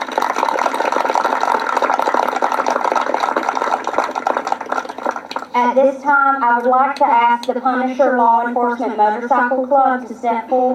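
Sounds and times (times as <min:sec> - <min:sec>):
audience applause: 0:00.0 - 0:05.5
speech: 0:05.6 - 0:10.7.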